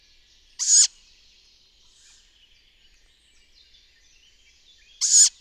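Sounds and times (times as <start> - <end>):
tawny owl quavering hoot: 0.6 - 1.0, 5.0 - 5.3.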